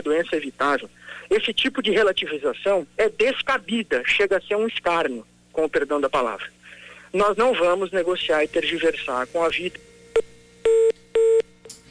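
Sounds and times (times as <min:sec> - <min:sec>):
speech: 0:00.1 - 0:10.8
telephone line tones after a dropped call: 0:09.4 - 0:11.6.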